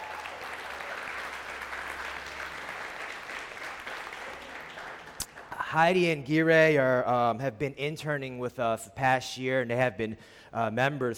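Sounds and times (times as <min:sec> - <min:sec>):
room full of people applauding: 0:00.0 - 0:05.6
speech: 0:05.7 - 0:11.1.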